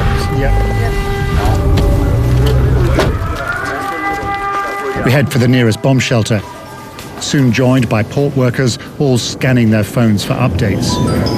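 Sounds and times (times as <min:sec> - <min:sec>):
air raid siren at port: 0:00.0 - 0:07.2
speech: 0:05.1 - 0:06.6, 0:07.2 - 0:11.3.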